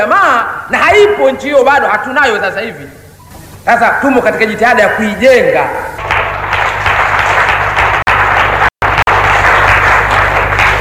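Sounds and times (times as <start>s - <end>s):
speech: 0.0s - 3.0s, 3.6s - 6.2s
audience of dignitaries applauding a political speech: 6.0s - 10.8s.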